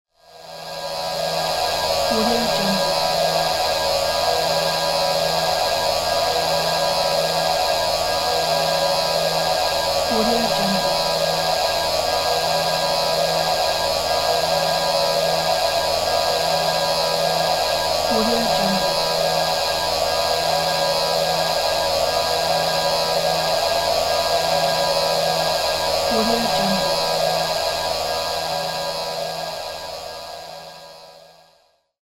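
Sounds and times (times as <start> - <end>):
wave movement drone: 0.7 - 29.8.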